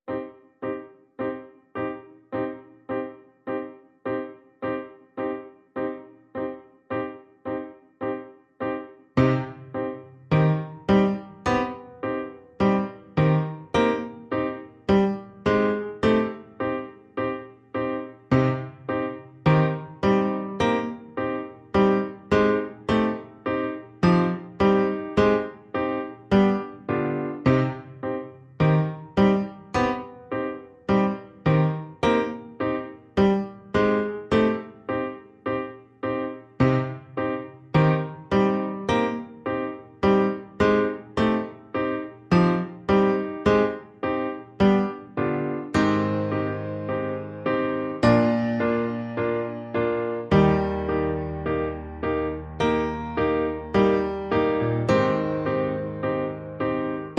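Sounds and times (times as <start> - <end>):
solo piano: 0.0 - 57.1.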